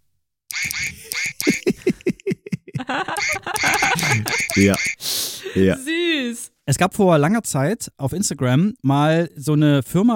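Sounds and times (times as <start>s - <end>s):
novelty computer keyboard with duck keys quacking: 0.5s - 1.7s, 3.2s - 5.0s
laughter: 0.8s - 4.9s
speech: 2.9s - 10.1s.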